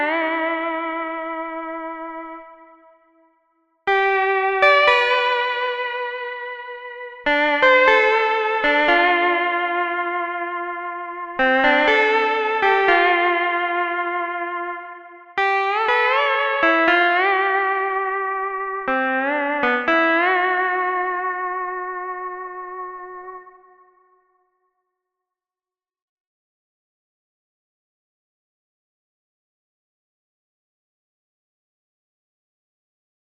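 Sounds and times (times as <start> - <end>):
lap steel guitar: 0.0 - 3.1, 3.9 - 24.0.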